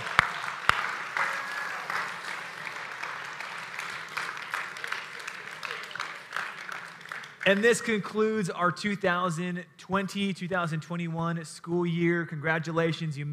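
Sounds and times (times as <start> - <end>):
audience applause for two pastors at a church gathering: 0.0 - 7.8
speech: 7.5 - 13.3.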